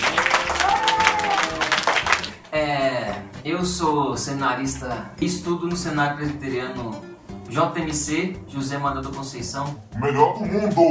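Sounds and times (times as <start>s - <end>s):
high cheer from crowd: 0.0s - 2.2s
audience clapping: 0.0s - 3.3s
speech: 3.4s - 10.8s.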